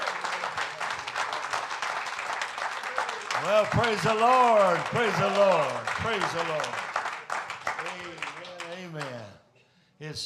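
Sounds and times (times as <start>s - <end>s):
audience hand clapping: 0.0s - 9.4s
speech: 3.4s - 6.8s, 10.0s - 10.2s.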